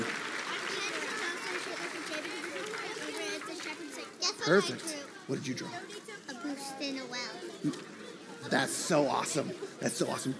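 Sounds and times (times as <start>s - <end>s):
audience applause: 0.0s - 5.2s
speech: 4.3s - 10.3s.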